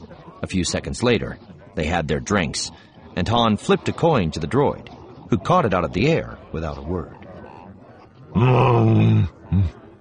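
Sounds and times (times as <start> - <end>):
speech: 0.4 - 7.2, 8.4 - 9.8
brief grunt: 8.3 - 9.8
human voice imitating a low soft growl: 8.3 - 9.8.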